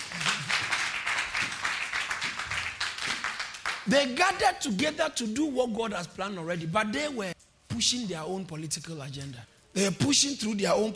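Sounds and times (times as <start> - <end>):
audience clapping: 0.0 - 4.2
speech: 3.9 - 10.9.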